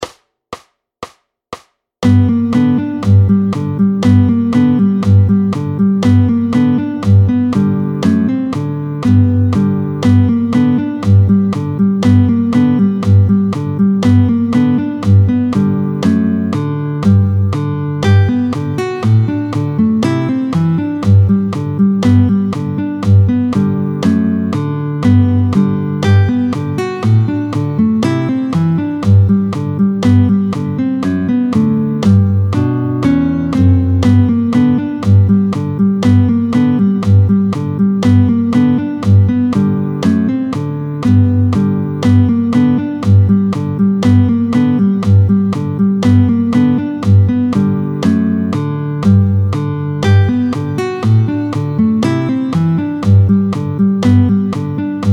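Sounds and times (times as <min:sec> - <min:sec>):
guitar picking at tempo 120: 0:02.0 - 0:55.1.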